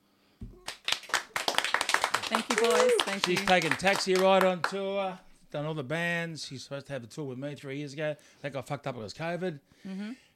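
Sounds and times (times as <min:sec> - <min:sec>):
hand clapping: 0:00.4 - 0:04.8
speech: 0:02.3 - 0:10.3.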